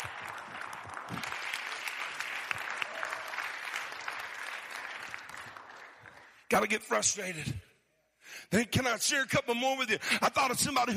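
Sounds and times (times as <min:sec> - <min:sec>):
audience clapping: 0:00.0 - 0:07.0
speech: 0:01.1 - 0:01.5, 0:06.5 - 0:07.6, 0:08.5 - 0:10.9.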